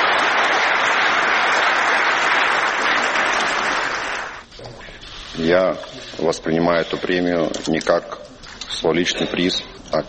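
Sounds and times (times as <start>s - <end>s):
standing ovation with loud applause: 0.0s - 4.5s
speech: 5.4s - 10.0s.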